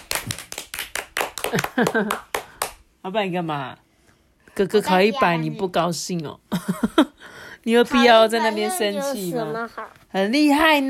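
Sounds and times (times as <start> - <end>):
applause: 0.0 - 2.8
speech: 1.5 - 2.3, 3.0 - 3.8, 4.6 - 10.8.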